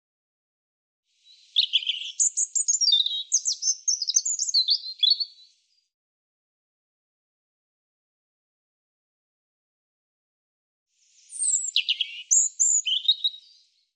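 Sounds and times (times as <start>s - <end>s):
European robin singing: 1.2s - 5.6s, 11.0s - 13.8s.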